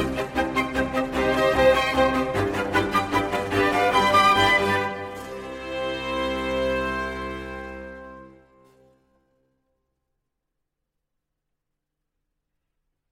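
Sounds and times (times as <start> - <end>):
flute concerto in G minor presto: 0.0 - 8.6.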